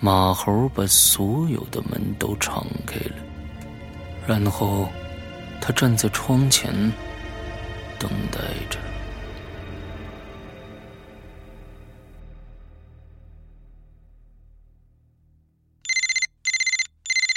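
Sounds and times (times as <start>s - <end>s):
speech: 0.0s - 3.3s, 4.3s - 5.0s, 5.6s - 7.1s, 8.0s - 8.9s
telephone ringing: 15.9s - 17.3s.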